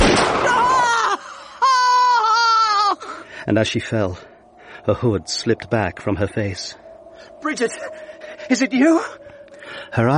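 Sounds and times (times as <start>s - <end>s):
gunshot sound effect in an audio drama: 0.0s - 0.7s
wailing, tonal cry: 0.4s - 3.2s
speech: 3.4s - 10.1s.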